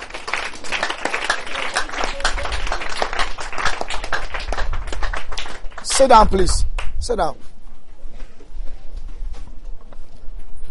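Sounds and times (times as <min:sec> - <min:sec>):
audience clapping hands: 0:00.0 - 0:07.2
speech: 0:06.0 - 0:07.5.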